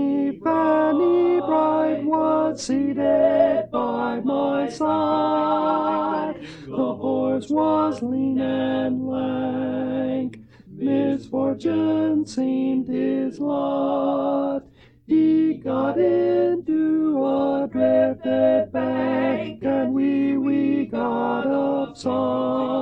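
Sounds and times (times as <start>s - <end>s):
tenor singing a Christmas song: 0.0s - 22.8s.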